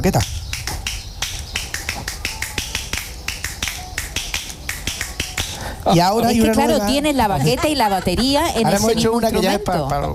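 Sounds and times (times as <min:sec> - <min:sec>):
speech: 0:00.0 - 0:00.4, 0:05.8 - 0:10.1
two-finger hand clapping: 0:00.5 - 0:05.6
laughter: 0:05.7 - 0:10.1.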